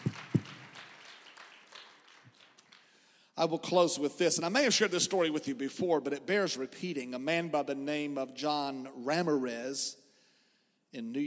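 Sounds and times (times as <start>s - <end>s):
audience clapping hands: 0.0s - 3.2s
speech: 3.4s - 10.0s, 10.9s - 11.2s.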